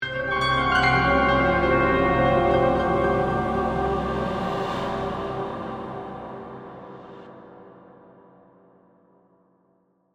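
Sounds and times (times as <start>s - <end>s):
ghostly haunting eerie horror piano accent: 0.0s - 7.7s.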